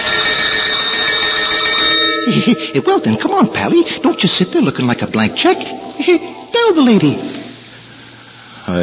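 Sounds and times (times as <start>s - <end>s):
bells ringing: 0.0s - 6.4s
speech: 2.3s - 7.4s, 8.7s - 8.8s.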